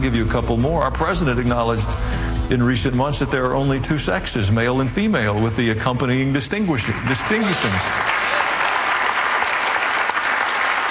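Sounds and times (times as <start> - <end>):
speech: 0.0 - 8.1
audience applause: 6.8 - 10.9.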